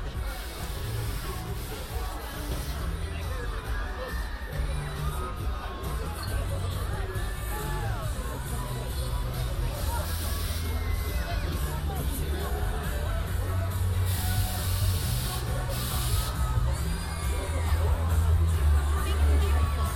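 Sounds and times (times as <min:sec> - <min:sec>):
crowd chatter in Hyde Park toward the winter carnival: 0:00.0 - 0:19.9
bright hissing bursts: 0:00.2 - 0:03.0, 0:09.8 - 0:10.8, 0:14.0 - 0:16.6.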